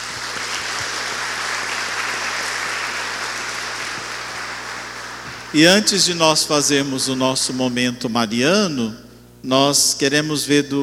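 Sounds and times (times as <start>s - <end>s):
audience applause: 0.0s - 5.7s
speech: 5.5s - 10.8s.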